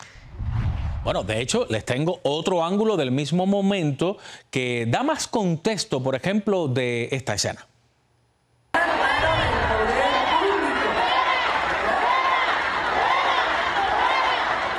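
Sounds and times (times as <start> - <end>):
speech: 1.0 - 7.7
crowd shouting at a protester: 8.8 - 14.7.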